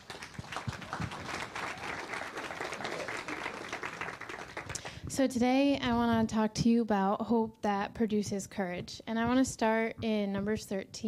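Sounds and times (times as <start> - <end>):
audience clapping welcoming a speaker at Redeeming Love Church: 0.0 - 5.1
speech: 5.2 - 11.0.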